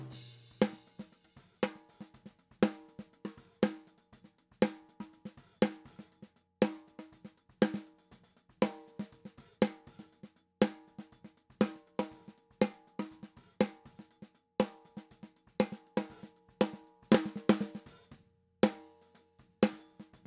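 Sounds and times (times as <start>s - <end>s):
snare drum top: 0.0s - 4.0s, 4.6s - 20.2s.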